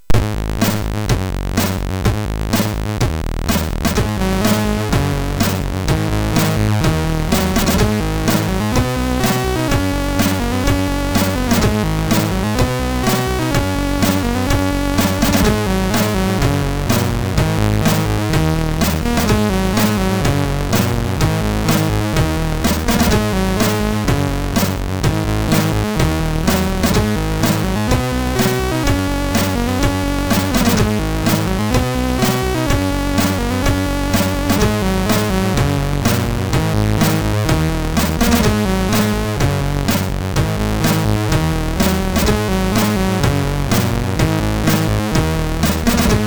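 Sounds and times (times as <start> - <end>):
MOS6581R3 chip game music: 0.0 - 46.2.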